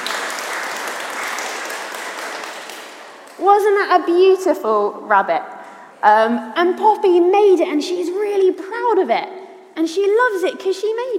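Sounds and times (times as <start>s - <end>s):
round of applause: 0.0s - 3.4s
speech: 3.4s - 11.1s.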